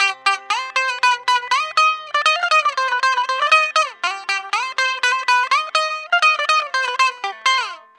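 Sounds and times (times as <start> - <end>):
electric bouzouki: 0.0 - 7.9.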